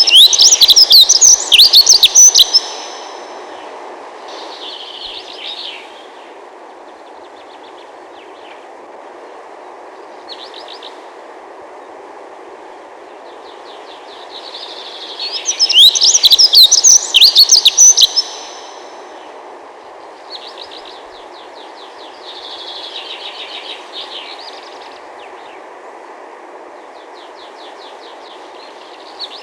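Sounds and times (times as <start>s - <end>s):
dunnock calling: 0.0s - 3.3s, 15.4s - 18.8s.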